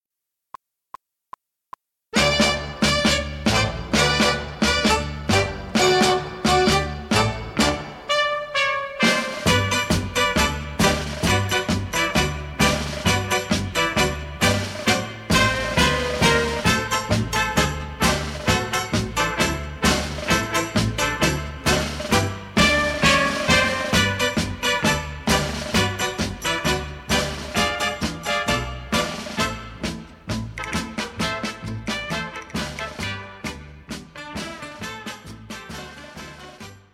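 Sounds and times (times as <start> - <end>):
ballroom 1940s tango music: 2.2 - 36.9.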